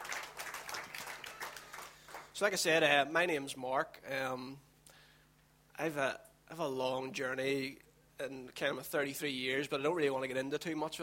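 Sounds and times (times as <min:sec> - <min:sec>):
crowd applauding: 0:00.0 - 0:02.4
speech: 0:02.4 - 0:04.7, 0:05.8 - 0:11.0.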